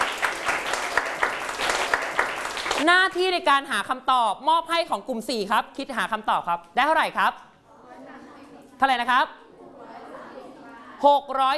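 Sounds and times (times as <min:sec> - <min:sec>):
classroom group clapping for a student: 0:00.0 - 0:03.3
speech: 0:02.8 - 0:07.5, 0:08.8 - 0:09.4, 0:11.0 - 0:11.5.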